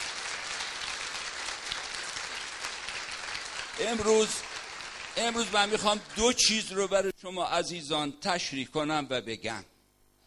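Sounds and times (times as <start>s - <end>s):
audience applause at a talk: 0.0s - 6.5s
speech: 3.8s - 4.5s, 5.2s - 9.7s.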